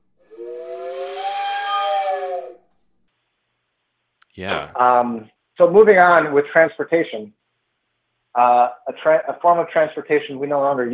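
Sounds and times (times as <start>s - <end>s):
voice imitating a train whistle: 0.3s - 2.6s
speech: 4.4s - 7.4s, 8.4s - 10.9s.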